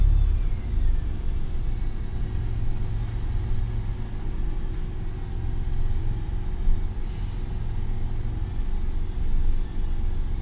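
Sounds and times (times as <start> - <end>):
bus engine rumbling in Brighton: 0.0 - 10.4.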